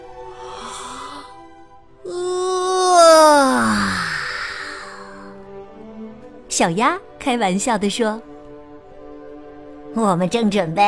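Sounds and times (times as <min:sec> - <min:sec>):
long yawn: 0:00.2 - 0:01.5, 0:02.1 - 0:05.4
speech: 0:06.6 - 0:08.3, 0:10.0 - 0:10.8.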